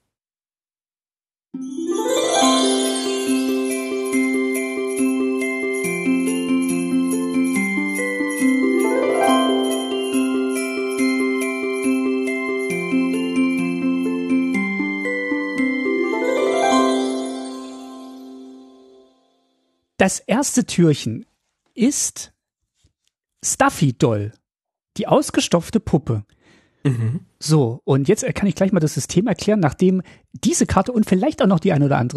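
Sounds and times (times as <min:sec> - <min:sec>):
speech: 0:01.6 - 0:02.4, 0:20.0 - 0:22.3, 0:23.4 - 0:24.4, 0:25.0 - 0:32.1
Christmas bells jingling: 0:01.6 - 0:19.0.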